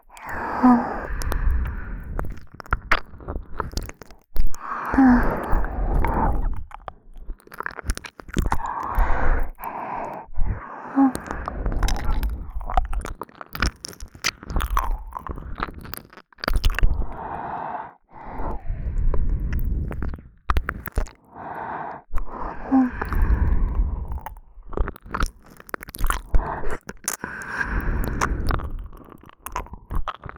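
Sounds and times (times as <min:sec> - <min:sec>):
ASMR licking deep inside the right ear: 0:00.0 - 0:17.4, 0:18.4 - 0:21.2, 0:22.1 - 0:30.3.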